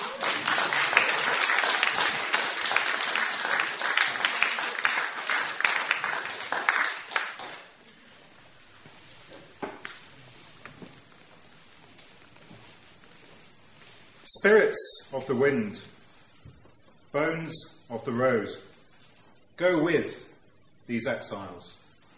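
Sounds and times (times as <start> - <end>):
audience applause for a group from Sheffield: 0.0 - 7.8
speech: 14.4 - 16.0, 17.2 - 18.7, 19.6 - 20.2, 20.9 - 21.8.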